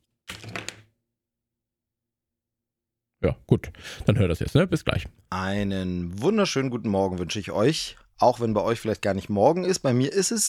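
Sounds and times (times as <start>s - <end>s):
pen tossed like a coin landing with a clatter: 0.3s - 0.9s
speech: 3.2s - 10.4s.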